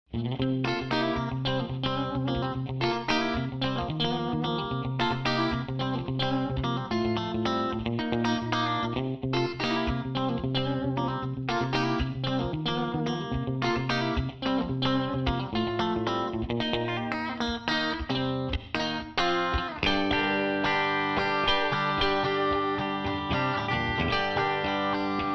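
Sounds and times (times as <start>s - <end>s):
country tune: 0.6s - 25.3s.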